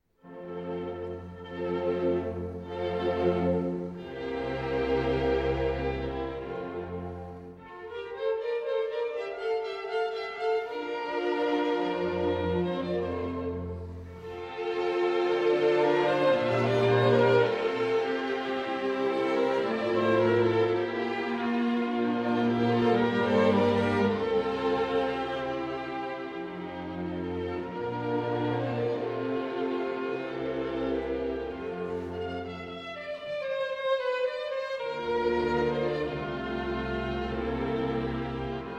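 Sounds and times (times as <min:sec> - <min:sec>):
concerto for flute, harp and orchestra: 0:00.3 - 0:38.7.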